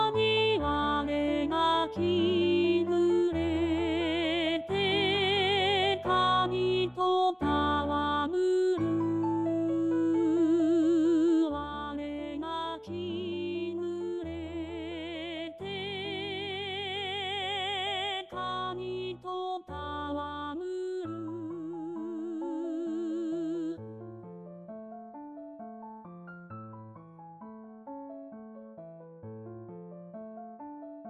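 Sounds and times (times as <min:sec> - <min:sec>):
alto voice singing: 0:00.0 - 0:23.9.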